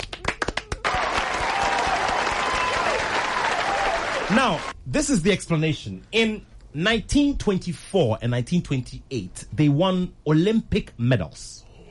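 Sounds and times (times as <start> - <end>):
audience applause: 0.0 - 4.7
speech: 4.3 - 11.6.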